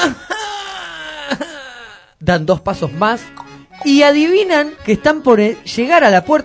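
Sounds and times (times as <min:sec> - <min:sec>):
human moan: 0:00.0 - 0:02.2
speech: 0:02.3 - 0:06.4.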